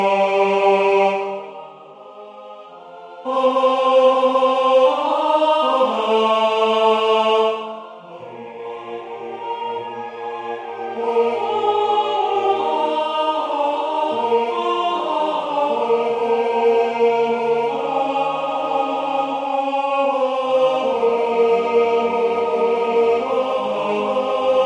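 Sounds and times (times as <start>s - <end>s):
choral chant: 0.0s - 24.6s.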